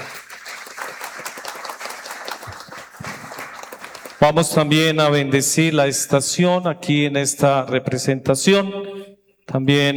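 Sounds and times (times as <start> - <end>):
applause: 0.0 - 4.8
speech: 4.2 - 8.9, 9.5 - 9.9.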